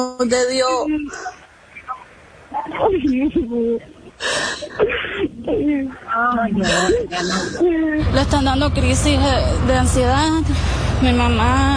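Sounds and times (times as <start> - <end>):
speech: 0.0 - 1.4, 2.6 - 11.7
woman sobbing on a phone call: 2.6 - 8.1.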